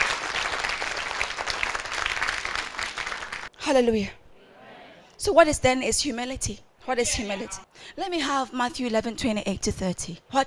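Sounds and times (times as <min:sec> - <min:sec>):
audience clapping hands: 0:00.0 - 0:03.6
speech: 0:03.7 - 0:04.2, 0:05.2 - 0:10.4.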